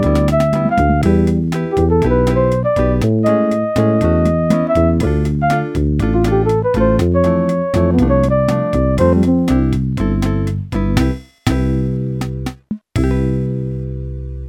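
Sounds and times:
Yamaha SHS-10 bossa nova factory style demo: 0.0s - 14.4s.

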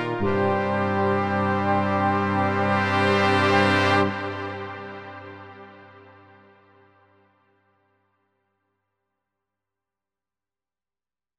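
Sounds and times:
ballad: 0.0s - 6.6s.

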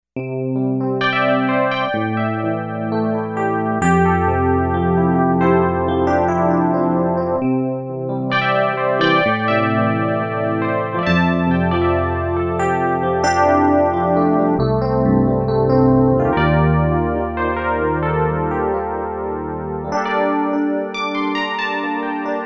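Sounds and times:
digital piano: 0.2s - 22.4s.

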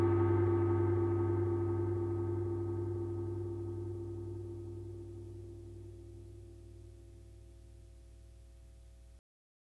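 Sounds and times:
orchestral percussion: 0.0s - 5.7s.

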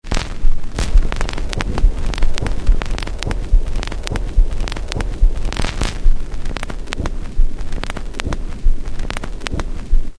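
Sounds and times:
record noise: 0.0s - 10.1s.

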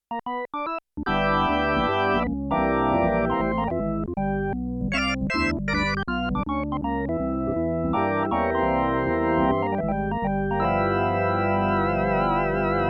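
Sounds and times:
organ: 0.4s - 12.8s.

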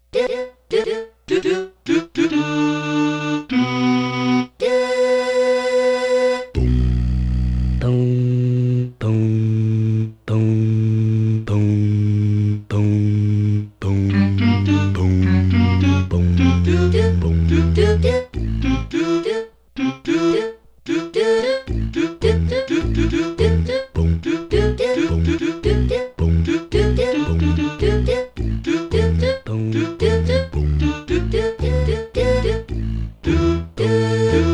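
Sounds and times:
vocal syllables bum and do: 0.0s - 5.1s, 6.3s - 34.5s.

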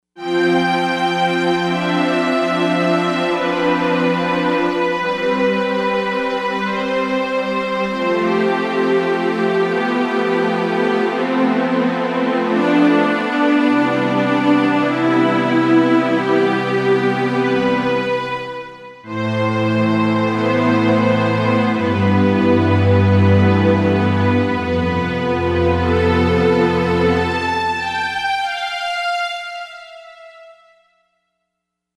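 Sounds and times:
strings: 0.2s - 30.8s.

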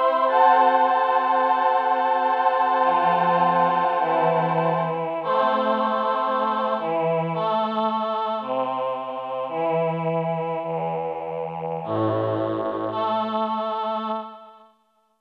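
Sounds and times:
VP-330 choir patch on Roland JD-990 synthesizer: 0.0s - 14.7s.

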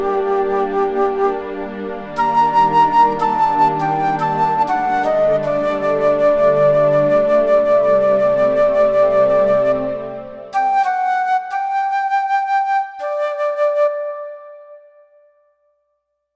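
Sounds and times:
strings: 0.0s - 12.0s
flute: 0.0s - 15.7s.

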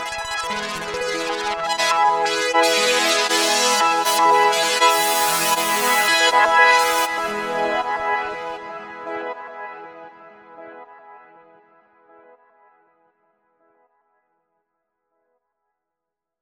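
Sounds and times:
swirling synth arpeggio: 0.0s - 9.2s.

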